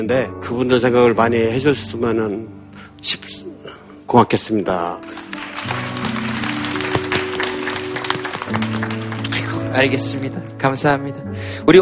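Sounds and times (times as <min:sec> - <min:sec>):
speech: 0:00.0 - 0:05.9, 0:09.8 - 0:11.8
audience applause: 0:05.1 - 0:10.0.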